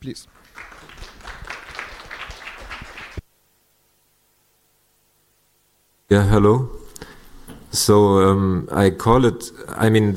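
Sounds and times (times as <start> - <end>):
speech: 0.0 - 1.1, 6.1 - 6.8, 7.7 - 10.1
audience applause: 0.3 - 3.2.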